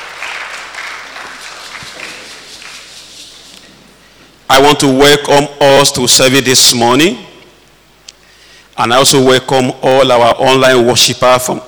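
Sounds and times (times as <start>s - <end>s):
congregation clapping during a church morning service: 0.0s - 3.2s
speech: 4.5s - 7.3s, 8.8s - 11.6s.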